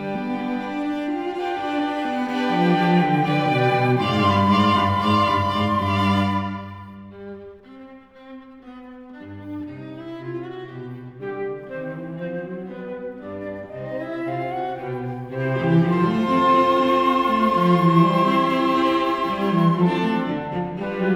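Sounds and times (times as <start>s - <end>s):
flute quartet playing a variation: 0.0s - 7.2s, 11.3s - 21.0s.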